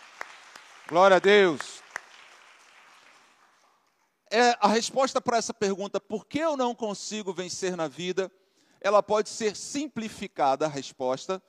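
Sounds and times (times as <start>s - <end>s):
audience applause: 0.0s - 3.9s
speech: 0.9s - 1.8s, 4.3s - 11.4s.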